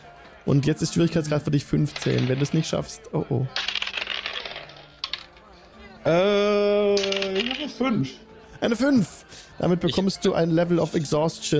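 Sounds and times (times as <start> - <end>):
speech: 0.5 - 3.7, 6.0 - 6.4, 7.6 - 11.5
dice rolled during a tabletop role-playing game: 1.8 - 5.4, 7.0 - 7.8.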